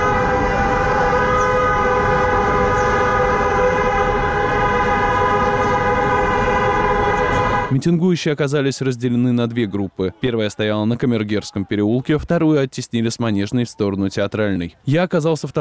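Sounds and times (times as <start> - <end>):
car horns honking continuously in support of protesters: 0.0 - 7.8
speech: 7.7 - 15.6.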